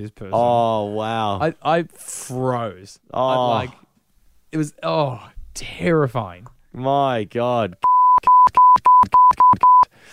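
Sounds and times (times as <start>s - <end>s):
speech: 0.0s - 3.8s, 4.5s - 7.9s
clipped speech fragments: 3.2s - 3.8s
censor bleeps: 7.8s - 9.9s.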